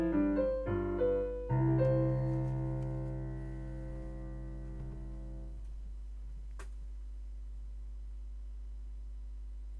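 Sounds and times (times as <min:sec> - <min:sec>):
piano invention: 0:00.0 - 0:05.6.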